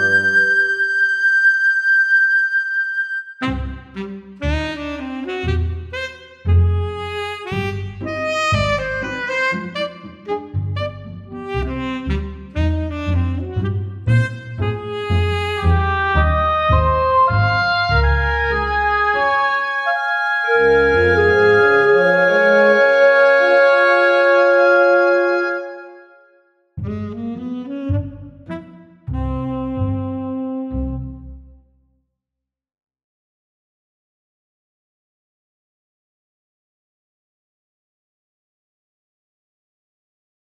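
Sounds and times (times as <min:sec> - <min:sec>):
woodwinds: 0:00.0 - 0:26.2, 0:26.9 - 0:31.3.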